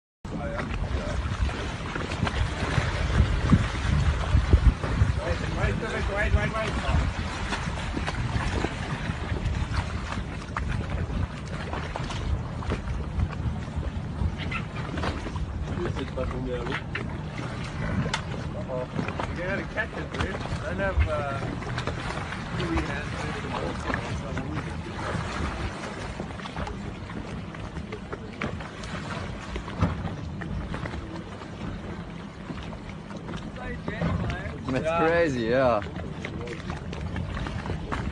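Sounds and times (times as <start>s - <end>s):
heavy low rumble of boat engine: 0.2s - 38.0s
water: 0.2s - 38.0s
beluga whale warbling calls: 14.2s - 15.1s.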